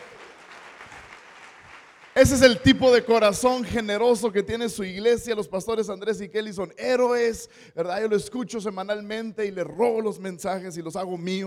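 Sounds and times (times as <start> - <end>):
audience applause: 0.0 - 2.6
speech: 2.2 - 11.4.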